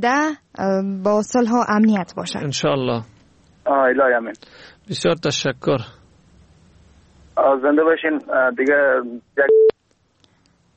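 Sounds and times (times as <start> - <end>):
speech: 0.0 - 3.1, 3.7 - 6.0, 7.4 - 9.6
telephone busy tone after a caller's line disconnects: 9.5 - 9.7.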